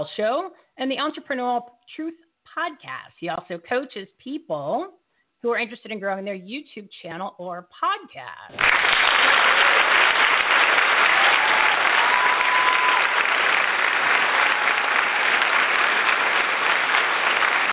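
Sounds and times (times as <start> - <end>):
speech: 0.0 - 10.0
live studio audience applauding: 8.5 - 17.7.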